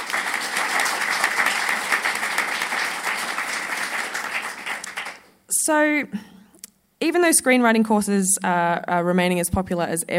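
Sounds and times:
audience applause welcoming a speaker at a talk: 0.0 - 5.3
speech: 5.6 - 6.3, 7.0 - 10.1.

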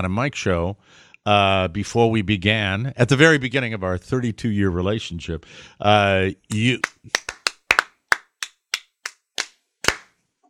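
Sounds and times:
speech: 0.0 - 7.4
single person clapping slowly and sarcastically: 6.5 - 10.1.

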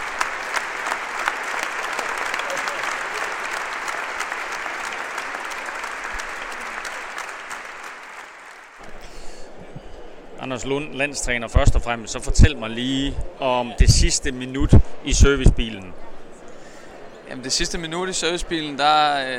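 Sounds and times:
large crowd applauding: 0.0 - 9.0
speech: 10.5 - 16.1, 17.3 - 19.3.

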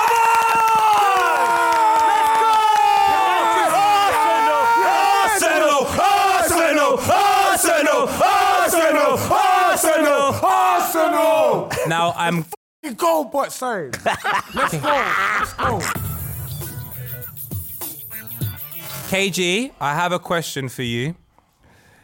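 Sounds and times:
clapping: 0.0 - 3.4
crowd cheering and yelling: 0.0 - 11.6
laughter: 11.7 - 12.4, 13.9 - 16.1
speech: 12.1 - 16.0, 19.1 - 21.2.

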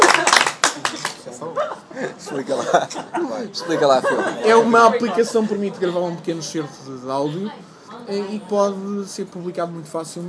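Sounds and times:
round of applause: 0.0 - 1.3
laughter: 0.0 - 6.2
speech: 2.2 - 10.2.

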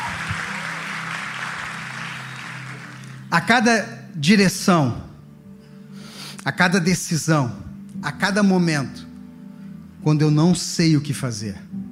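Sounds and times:
audience applause: 0.0 - 3.3
speech: 3.3 - 5.0, 6.4 - 9.0, 10.0 - 11.7.

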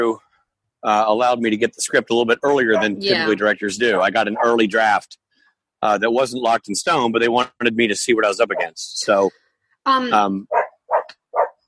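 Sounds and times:
speech: 0.0 - 0.2, 0.8 - 5.2, 5.8 - 10.6
dog barking: 2.7 - 3.0, 4.2 - 4.6, 8.5 - 8.8, 10.5 - 11.6.

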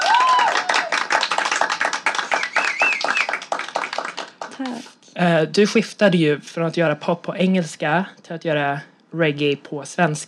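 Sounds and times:
clapping applause: 0.0 - 4.9
speech: 4.6 - 10.2.

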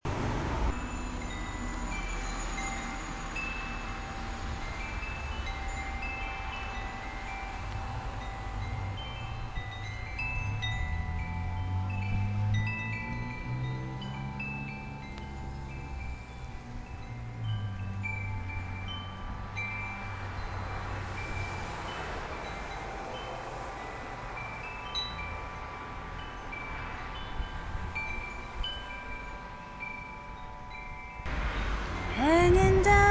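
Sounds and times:
singing wind chimes on studio patio: 0.6 - 33.0.

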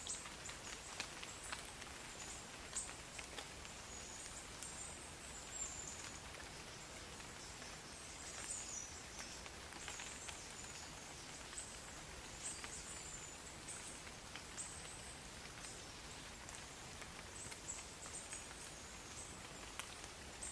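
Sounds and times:
rain in the forest: 0.0 - 20.5.

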